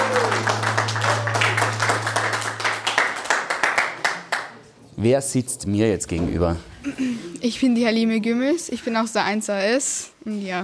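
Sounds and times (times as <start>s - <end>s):
audience applause: 0.0s - 4.6s
speech: 5.0s - 10.6s.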